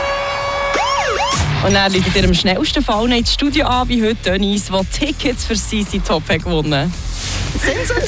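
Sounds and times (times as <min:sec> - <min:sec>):
ticket alarm siren jingle: 0:00.2 - 0:02.6
speech: 0:01.6 - 0:07.0, 0:07.6 - 0:08.0
laughter: 0:07.5 - 0:08.0.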